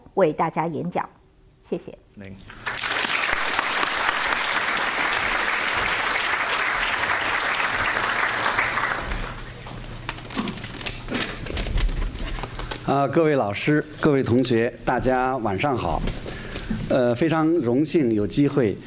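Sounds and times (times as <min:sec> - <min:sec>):
speech: 0:00.2 - 0:02.6, 0:12.9 - 0:18.8
low room noise: 0:01.0 - 0:18.8
audience applause: 0:02.5 - 0:09.6.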